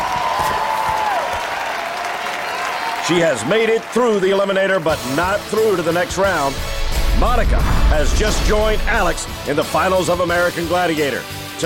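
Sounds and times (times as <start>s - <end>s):
crowd cheering at an American Gladiator competition: 0.0s - 5.1s
speech: 3.1s - 11.6s.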